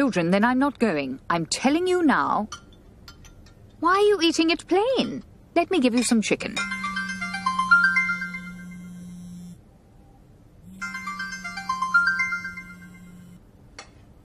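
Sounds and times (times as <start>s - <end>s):
speech: 0.0s - 2.6s, 3.8s - 6.8s
mobile phone ringtone playing a bright electronic tune: 6.6s - 9.5s, 10.7s - 13.4s
steady low hum: 6.6s - 13.6s.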